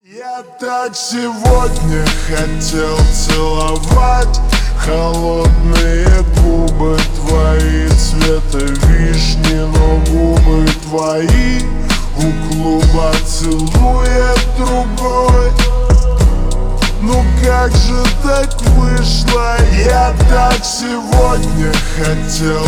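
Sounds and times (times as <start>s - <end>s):
slowed reverb music: 0.6s - 22.6s.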